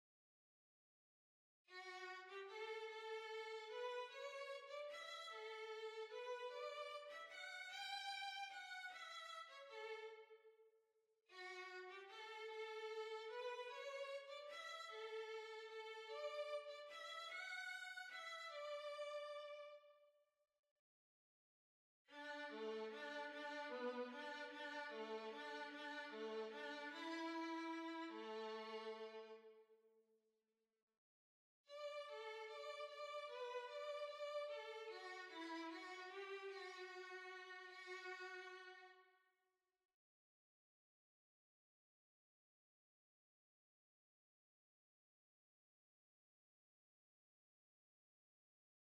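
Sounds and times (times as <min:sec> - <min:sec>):
violin: 0:01.7 - 0:10.4, 0:11.3 - 0:19.9, 0:22.1 - 0:29.6, 0:31.7 - 0:39.0.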